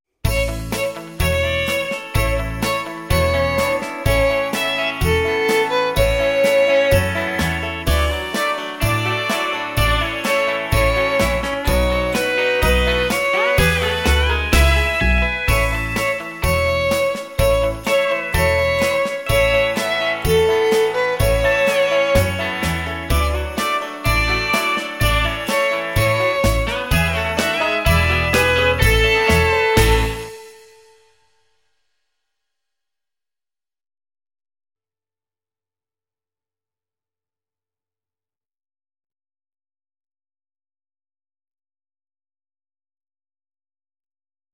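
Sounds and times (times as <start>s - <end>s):
Christmas song: 0.3s - 31.4s.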